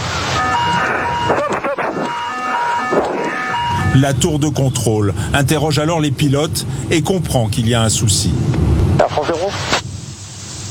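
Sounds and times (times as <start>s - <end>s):
aircraft cockpit alarms sounding: 0.0s - 4.5s
speech: 4.0s - 9.8s.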